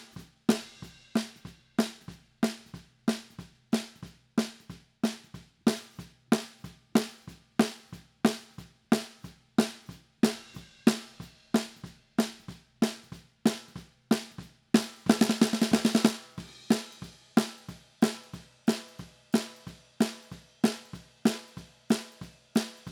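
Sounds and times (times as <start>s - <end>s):
snare drum bottom: 0.0s - 22.8s.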